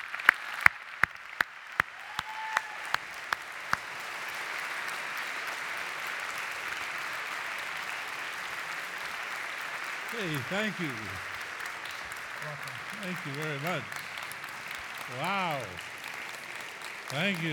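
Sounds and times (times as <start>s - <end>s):
audience applause welcoming a speaker on a college campus: 0.0s - 17.5s
laughter: 10.1s - 11.3s, 12.4s - 14.0s, 15.0s - 15.8s, 17.1s - 17.5s
speech: 10.2s - 11.3s, 12.4s - 14.1s, 15.1s - 15.9s, 17.1s - 17.5s.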